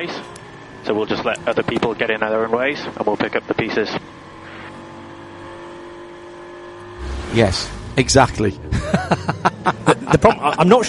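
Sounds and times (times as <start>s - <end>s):
speech: 0.0s - 4.2s, 7.3s - 10.8s
Aston Martin race car engine droning on circuit: 0.0s - 10.8s
laughter: 8.6s - 10.7s.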